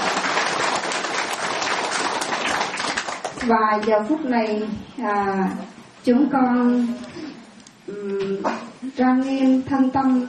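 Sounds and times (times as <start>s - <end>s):
Buddhist audience applauding to welcome a lecturing monk: 0.0s - 3.4s
speech: 3.4s - 7.3s, 7.9s - 10.2s.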